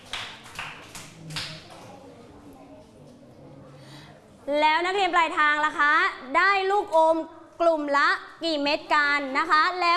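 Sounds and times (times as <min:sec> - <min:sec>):
group of children clapping in rhythm: 0:00.0 - 0:01.9
speech: 0:04.5 - 0:09.9.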